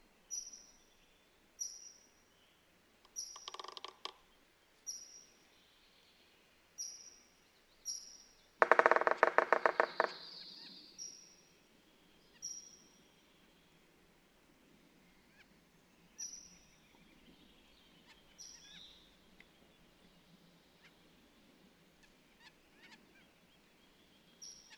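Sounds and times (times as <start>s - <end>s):
Red-naped sapsucker calling: 8.6s - 10.7s.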